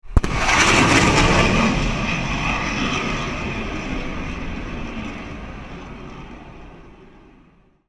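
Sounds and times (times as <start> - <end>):
aerial sonic boom: 0.1 - 3.2.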